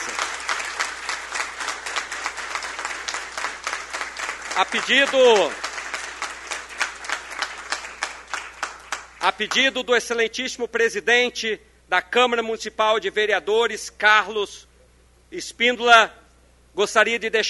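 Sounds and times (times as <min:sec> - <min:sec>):
audience applause: 0:00.0 - 0:09.6
speech: 0:04.6 - 0:05.6, 0:09.2 - 0:14.7, 0:15.3 - 0:16.2, 0:16.8 - 0:17.4.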